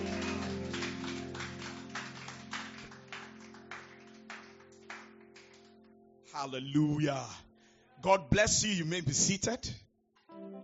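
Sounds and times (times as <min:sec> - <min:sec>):
audience clapping hands: 0:00.0 - 0:06.0
speech: 0:06.4 - 0:09.8.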